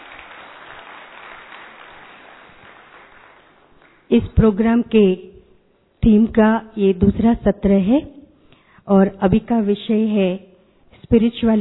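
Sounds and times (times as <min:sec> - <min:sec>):
audience applause at a spiritual program: 0:00.0 - 0:04.1
speech: 0:04.1 - 0:05.3, 0:06.0 - 0:08.2, 0:08.9 - 0:10.5, 0:11.1 - 0:11.5.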